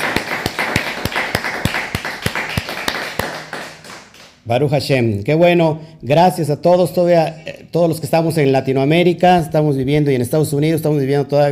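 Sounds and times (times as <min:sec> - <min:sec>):
audience clapping in unison: 0:00.0 - 0:04.4
speech: 0:04.5 - 0:11.5.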